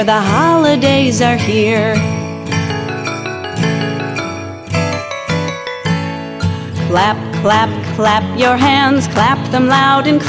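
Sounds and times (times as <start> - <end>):
speech: 0.0 - 2.8, 6.9 - 10.2
bells ringing: 2.0 - 6.8.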